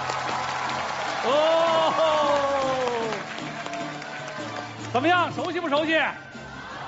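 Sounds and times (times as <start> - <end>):
audience clapping at a gala welcoming two guests: 0.0 - 5.9
speech: 1.2 - 1.6, 4.9 - 6.3.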